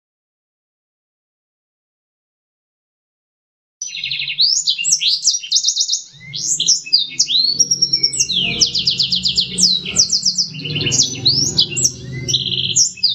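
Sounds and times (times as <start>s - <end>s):
black-throated canary singing: 3.8s - 13.1s.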